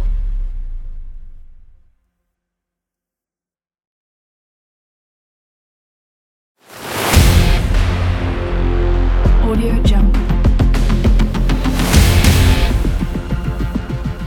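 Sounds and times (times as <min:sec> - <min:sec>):
epic rock trailer ident music: 0:06.7 - 0:14.2.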